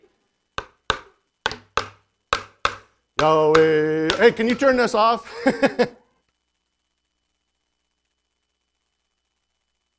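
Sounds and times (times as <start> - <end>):
hand drum being played: 0.6 - 4.7
speech: 3.2 - 6.0
laughter: 5.2 - 6.0.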